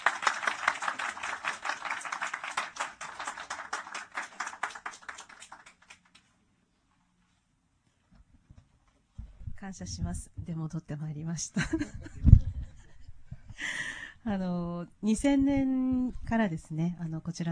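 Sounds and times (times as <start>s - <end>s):
welcoming audience applause: 0.0s - 6.3s
speech: 9.6s - 12.4s, 14.2s - 17.5s.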